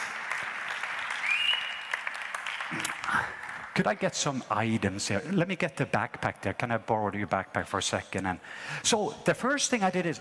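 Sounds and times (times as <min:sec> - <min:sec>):
audience clapping for a volunteer: 0:00.0 - 0:05.2
speech: 0:03.8 - 0:10.1.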